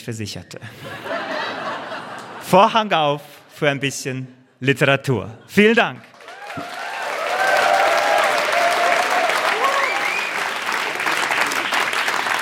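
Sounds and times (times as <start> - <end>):
speech: 0.0 - 1.2, 2.5 - 6.8
laughter: 0.6 - 3.5
applause: 5.9 - 12.4.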